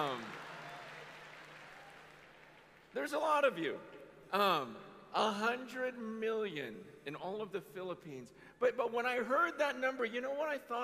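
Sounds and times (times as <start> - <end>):
audience clapping: 0.0 - 3.8
speech: 2.9 - 10.8.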